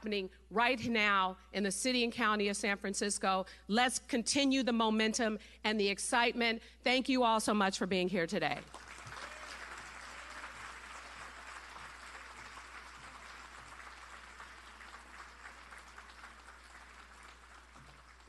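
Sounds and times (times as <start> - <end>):
speech: 0.0 - 8.8
audience applause: 8.7 - 18.2.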